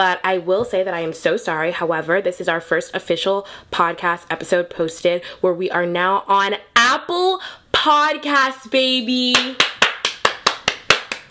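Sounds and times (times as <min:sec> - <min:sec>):
speech: 0:00.0 - 0:09.8
applause: 0:09.3 - 0:11.2.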